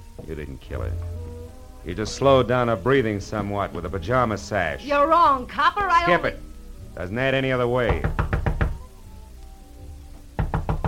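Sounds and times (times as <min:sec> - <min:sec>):
speech: 0:00.3 - 0:01.2, 0:01.8 - 0:08.2
knocking on a door: 0:07.8 - 0:08.9, 0:10.4 - 0:10.8.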